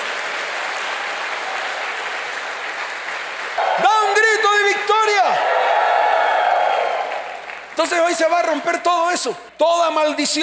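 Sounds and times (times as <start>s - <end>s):
strong applause from audience: 0.0s - 8.2s
speech: 7.8s - 10.4s.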